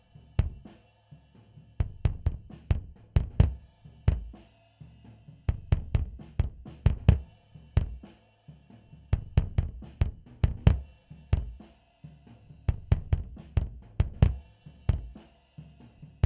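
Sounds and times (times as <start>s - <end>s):
bass drum: 0.0s - 0.8s, 1.8s - 4.5s, 5.3s - 8.2s, 9.1s - 11.8s, 12.4s - 16.2s.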